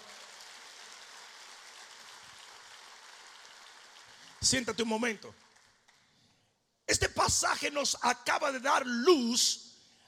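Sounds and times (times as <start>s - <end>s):
crowd applauding: 0.0s - 6.1s
speech: 4.4s - 5.4s, 6.9s - 9.7s.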